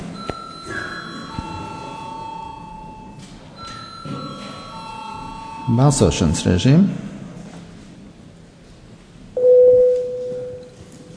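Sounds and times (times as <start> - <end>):
low murmur of room noise: 0.0 - 11.1
parliament voting bell ringing: 0.2 - 6.4
speech: 5.7 - 7.1.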